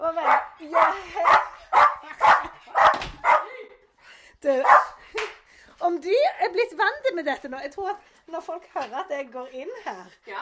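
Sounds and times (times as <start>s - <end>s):
dog barking: 0.2s - 3.5s, 4.6s - 5.0s
speech: 7.2s - 10.4s.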